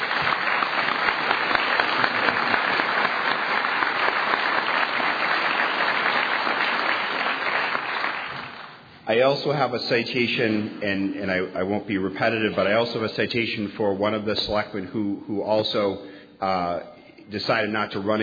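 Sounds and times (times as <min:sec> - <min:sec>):
audience applause: 0:00.0 - 0:08.8
speech: 0:09.1 - 0:18.2.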